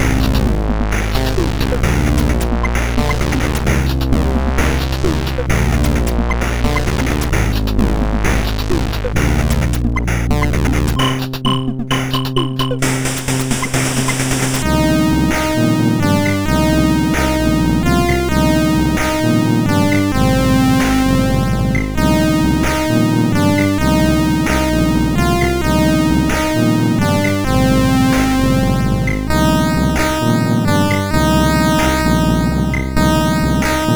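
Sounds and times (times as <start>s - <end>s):
SID chip MOS6581R4 music: 0.0s - 33.9s.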